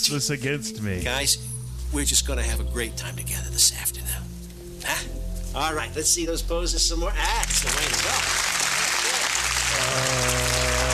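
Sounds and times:
speech: 0.0 - 8.4, 9.9 - 10.6
audience clapping at the end of a scene: 7.4 - 10.9.

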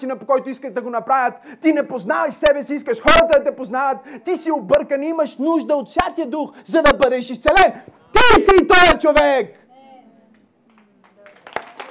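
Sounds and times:
speech: 0.0 - 9.6
audience clapping hands: 10.7 - 11.9.

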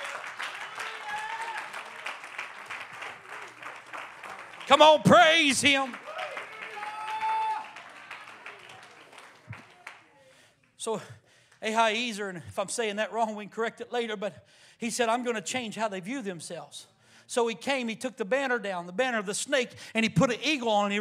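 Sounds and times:
audience clapping hands: 0.0 - 10.8
speech: 4.7 - 6.0, 10.8 - 21.0.

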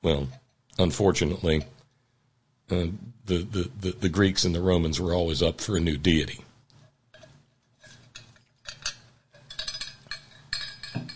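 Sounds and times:
speech: 0.0 - 1.8, 2.7 - 6.5
metal straw rattling in water bottle: 7.8 - 11.1.

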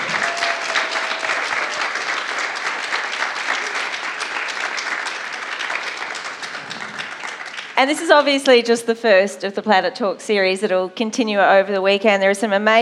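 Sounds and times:
audience applause: 0.0 - 8.3
speech: 7.8 - 12.8.

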